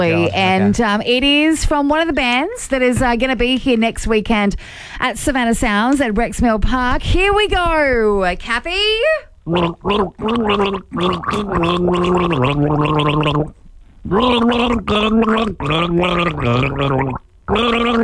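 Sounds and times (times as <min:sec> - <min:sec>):
speech: 0:00.0 - 0:18.0
person gargling a song's melody: 0:09.5 - 0:18.0.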